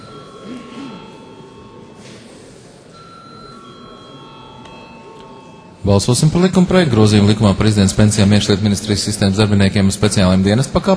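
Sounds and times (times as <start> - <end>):
parliament voting bell signal: 0.0 - 5.8
low murmur: 0.0 - 10.9
speech: 5.8 - 10.9.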